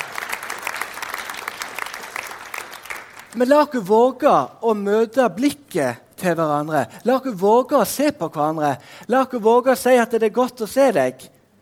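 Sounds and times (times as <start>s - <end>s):
audience applause: 0.0s - 3.4s
speech: 3.3s - 11.3s.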